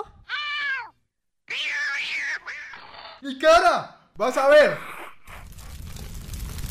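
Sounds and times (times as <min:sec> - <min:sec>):
cat yowling as it is grabbed by the neck: 0:00.3 - 0:03.0
speech: 0:03.2 - 0:04.9.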